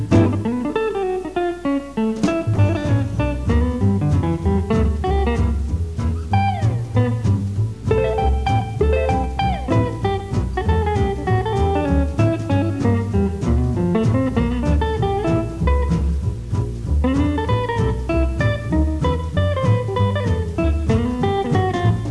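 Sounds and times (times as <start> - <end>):
solo string picking: 0.0 - 22.1.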